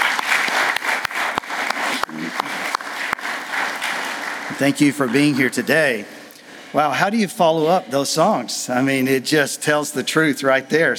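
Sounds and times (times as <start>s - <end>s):
audience round of applause: 0.0s - 5.7s
speech: 4.6s - 10.9s.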